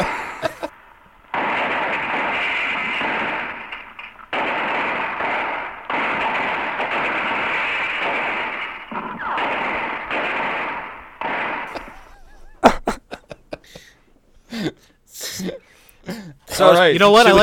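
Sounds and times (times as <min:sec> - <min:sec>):
laughter: 0:00.0 - 0:00.8, 0:11.7 - 0:13.9
gunfire: 0:00.0 - 0:12.8
speech: 0:16.6 - 0:17.4.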